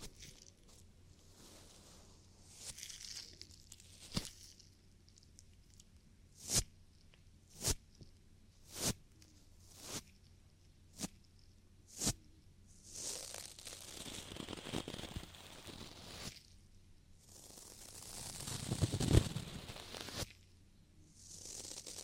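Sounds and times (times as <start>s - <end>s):
faint low hum: 0.0s - 12.9s, 20.3s - 21.4s
soft scratchy ear cleaning rustling: 0.0s - 16.6s, 17.2s - 22.0s.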